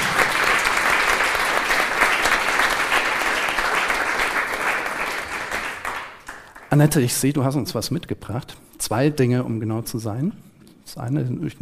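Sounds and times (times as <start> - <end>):
audience applause: 0.0 - 6.9
speech: 6.7 - 11.6.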